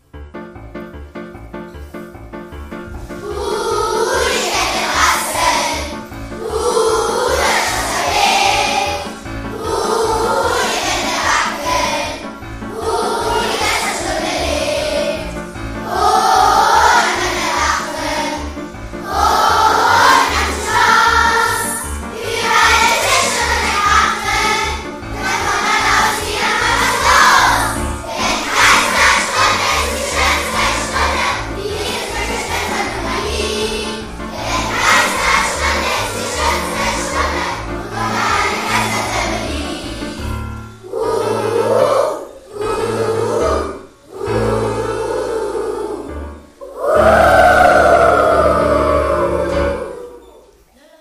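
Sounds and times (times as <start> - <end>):
primary school choir singing: 2.8 - 50.7.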